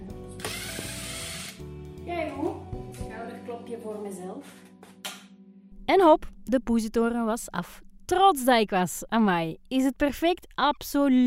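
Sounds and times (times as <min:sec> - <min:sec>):
power screwdriver driving in a screw: 0:00.4 - 0:01.6
speech: 0:03.8 - 0:04.7, 0:05.9 - 0:11.2.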